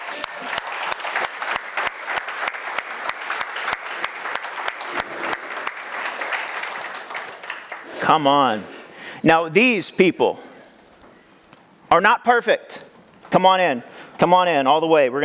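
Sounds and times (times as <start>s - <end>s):
church congregation applauding life group leaders: 0.0s - 9.2s
speech: 8.1s - 10.5s, 11.9s - 15.2s.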